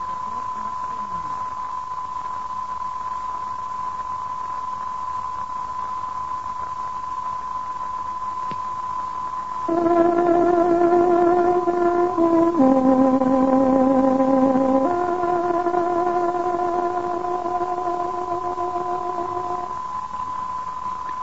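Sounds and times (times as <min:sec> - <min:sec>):
constant broadcast hum: 0:00.0 - 0:21.2
tárogató radio time signal melody: 0:09.7 - 0:19.8.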